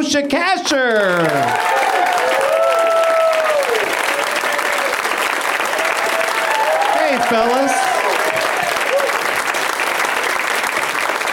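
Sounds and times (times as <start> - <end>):
speech: 0.0 - 2.2, 7.1 - 7.9
audience applause on a comedy talk show: 0.7 - 11.3.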